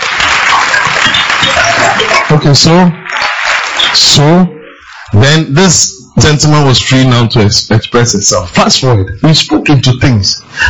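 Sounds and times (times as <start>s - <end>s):
audience clapping: 0.0s - 4.4s
speech: 2.4s - 3.2s, 3.9s - 10.6s.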